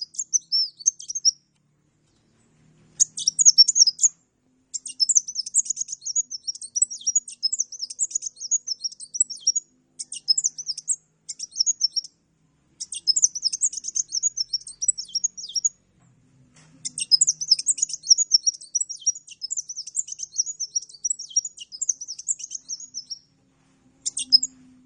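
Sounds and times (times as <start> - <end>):
Oriental magpie-robin singing lively: 0.0 - 1.4, 3.0 - 12.2, 12.8 - 15.8, 16.8 - 23.3, 24.0 - 24.6.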